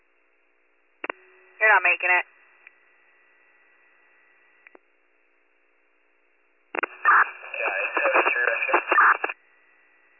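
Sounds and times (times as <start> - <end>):
speech: 1.7 - 2.3
crackling radio static: 6.8 - 9.4.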